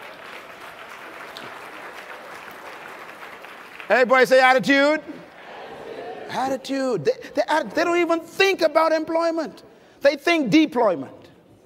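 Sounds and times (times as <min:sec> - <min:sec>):
audience applause: 0:00.0 - 0:06.0
speech: 0:03.9 - 0:05.2, 0:06.3 - 0:11.2.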